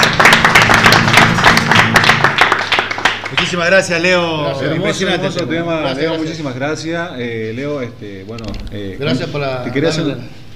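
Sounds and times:
audience applause: 0.0 - 4.2
speech: 3.5 - 10.5.

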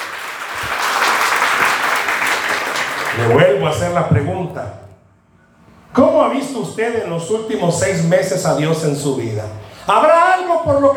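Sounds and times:
crowd applauding: 0.0 - 3.5
speech: 3.2 - 4.8, 5.9 - 10.9.

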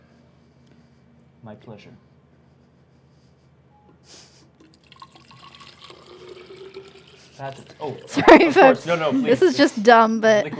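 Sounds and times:
speech: 1.4 - 2.1, 7.4 - 10.5
urine stream splashing into a hydrangea bush: 4.7 - 8.2.

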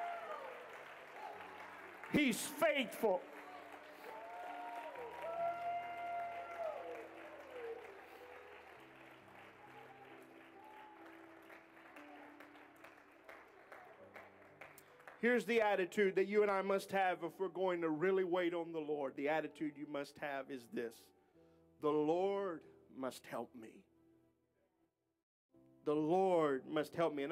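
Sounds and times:
audience applauding: 0.0 - 15.8
speech: 2.1 - 3.4, 15.2 - 21.2, 21.8 - 23.9, 25.8 - 27.2.

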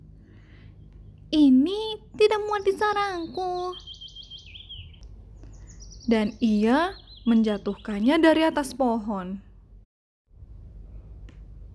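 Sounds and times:
low steady hum: 0.0 - 11.7
bird chirping and warbling: 0.4 - 9.2
speech: 1.3 - 3.9, 6.1 - 9.5.

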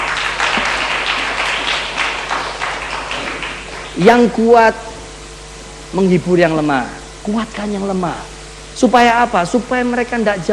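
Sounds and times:
audience applause: 0.0 - 4.3
speech: 4.0 - 4.9, 5.9 - 10.5.

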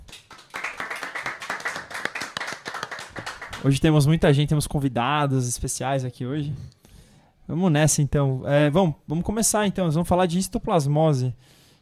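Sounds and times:
audience applause: 0.0 - 3.7
speech: 3.6 - 6.8, 7.5 - 11.6.

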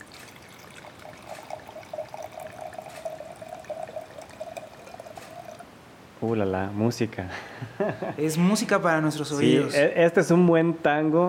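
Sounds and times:
wine pouring into a glass: 0.0 - 5.7
speech: 6.2 - 11.2
laughter: 7.6 - 8.2.

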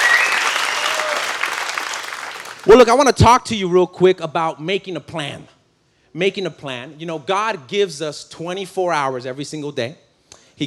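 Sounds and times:
audience applause: 0.0 - 2.7
speech: 2.6 - 10.0.

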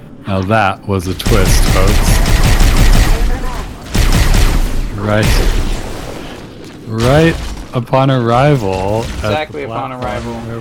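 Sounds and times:
speech: 0.3 - 2.2, 5.0 - 5.6, 6.9 - 10.5
rocket launcher explosions in a video game: 1.2 - 7.8.

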